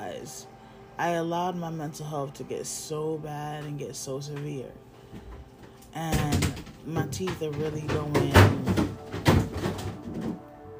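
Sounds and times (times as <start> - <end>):
speech: 0.2 - 5.3, 6.0 - 8.9
items falling out of a refrigerator: 5.1 - 10.6.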